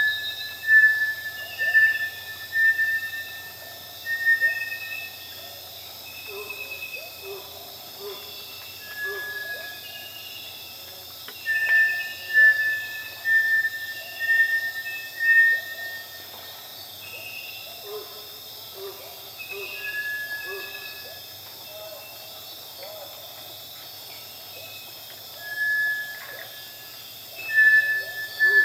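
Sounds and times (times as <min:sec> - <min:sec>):
Bartlett's tinamou whistling: 0:00.0 - 0:05.4, 0:08.8 - 0:10.2, 0:11.3 - 0:16.4, 0:19.5 - 0:21.1, 0:25.3 - 0:28.6.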